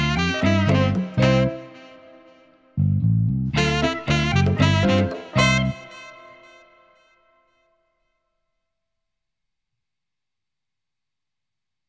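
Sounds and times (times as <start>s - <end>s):
film noir backing music: 0.0s - 7.0s.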